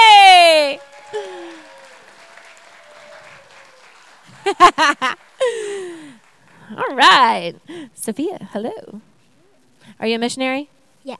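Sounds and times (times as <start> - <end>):
laughter: 0.0 - 6.2
audience applause: 0.0 - 7.7
speech: 7.0 - 9.1, 10.0 - 11.1.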